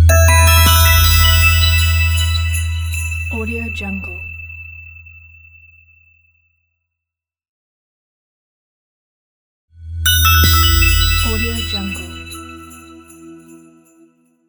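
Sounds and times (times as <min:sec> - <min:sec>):
Christmas logo jingle: 0:00.1 - 0:05.3, 0:10.1 - 0:14.1.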